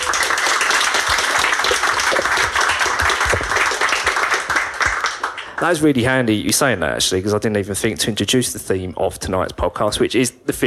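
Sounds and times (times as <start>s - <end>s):
audience applause: 0.0s - 6.0s
speech: 5.6s - 10.6s.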